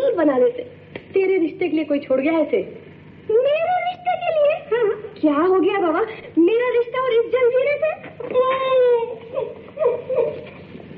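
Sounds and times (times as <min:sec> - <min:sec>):
speech: 0:00.2 - 0:03.6, 0:04.8 - 0:10.9
woman crying: 0:03.4 - 0:05.2, 0:07.9 - 0:10.6.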